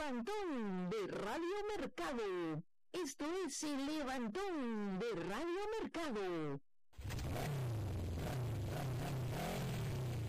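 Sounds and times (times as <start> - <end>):
speech: 0.0 - 7.1
motorcycle engine revving: 7.0 - 10.2.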